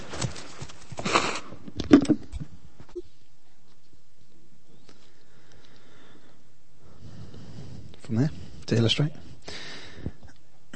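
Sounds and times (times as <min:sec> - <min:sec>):
person blowing their nose: 0:01.0 - 0:01.5
speech: 0:08.7 - 0:09.3.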